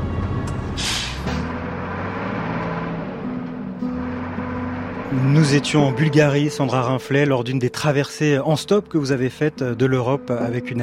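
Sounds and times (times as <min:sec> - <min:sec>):
inside a heavy truck cab: 0:00.0 - 0:10.8
speech: 0:05.1 - 0:10.8.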